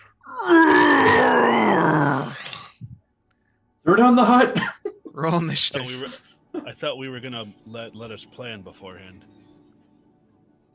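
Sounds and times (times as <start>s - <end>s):
tired dragon creature groaning roar: 0.3s - 2.7s
speech: 4.0s - 9.3s.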